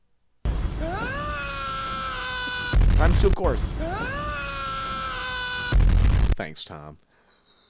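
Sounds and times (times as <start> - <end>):
scream sound effect: 0.8 - 6.4
speech: 3.0 - 4.2, 6.4 - 7.0.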